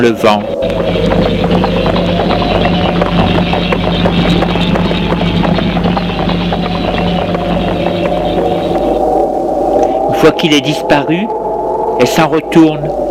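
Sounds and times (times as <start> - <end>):
speech: 0.0 - 1.8, 10.2 - 11.4, 12.0 - 13.0
horse riding away in the wind: 0.2 - 10.0.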